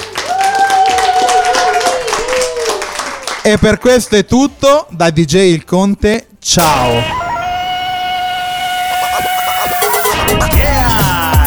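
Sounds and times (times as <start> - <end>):
crowd clapping: 0.0 - 3.8
speech: 3.4 - 7.2
long sustained whistle-like tone: 6.6 - 11.4.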